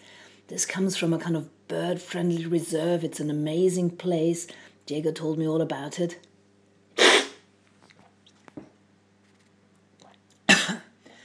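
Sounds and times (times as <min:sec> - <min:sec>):
speech: 0:00.5 - 0:06.3
loud slurp of coffee being tasted: 0:07.0 - 0:07.4.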